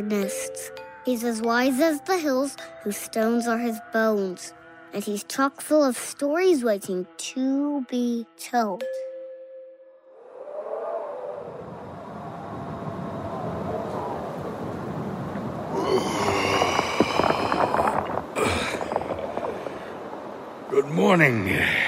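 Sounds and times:
speech: 0:00.0 - 0:09.1, 0:21.0 - 0:21.8
strong wind blowing: 0:10.2 - 0:21.8.

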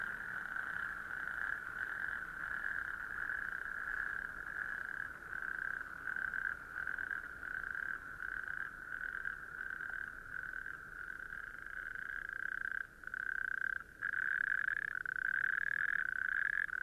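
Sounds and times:
natterjack toads trilling in chorus: 0:00.0 - 0:16.8.

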